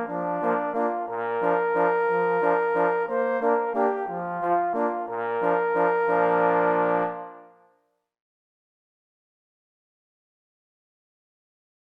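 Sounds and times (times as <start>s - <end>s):
parforce horn solo waltz accompanied by three parforce horns: 0.0s - 7.6s.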